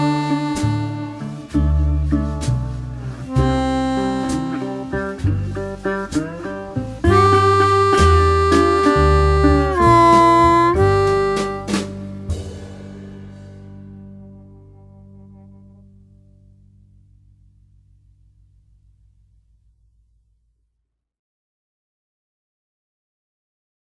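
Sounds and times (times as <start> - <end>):
blues harp playing a slow blues example: 0.0 - 12.3.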